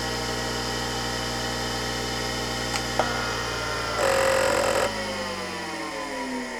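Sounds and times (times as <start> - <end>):
Seagate ST-251-1 hard disk drive: 0.1 - 6.4.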